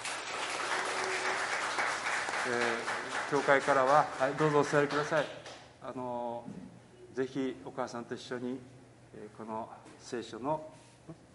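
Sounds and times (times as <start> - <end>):
audience applause: 0.0 - 5.2
speech: 2.5 - 11.2.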